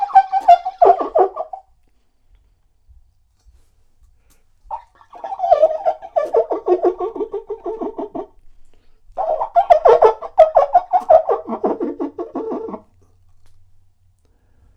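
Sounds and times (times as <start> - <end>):
bird rattling gobbling calls: 0.0 - 1.6, 4.7 - 12.9.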